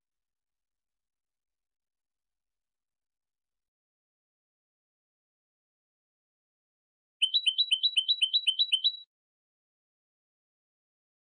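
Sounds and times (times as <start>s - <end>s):
European goldfinch singing paired chirps: 7.2s - 9.1s.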